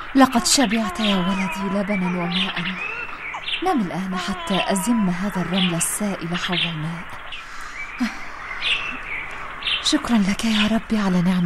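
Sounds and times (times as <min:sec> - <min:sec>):
birds chirping: 0:00.0 - 0:11.4
speech: 0:00.1 - 0:03.0, 0:03.6 - 0:07.4, 0:08.0 - 0:08.2, 0:09.8 - 0:11.4.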